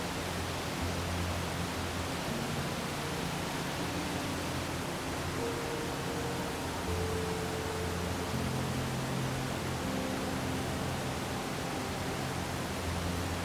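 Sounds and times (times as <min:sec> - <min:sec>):
soft music with low sustained tones: 0:00.0 - 0:13.4
waterfall rushing: 0:00.0 - 0:13.4.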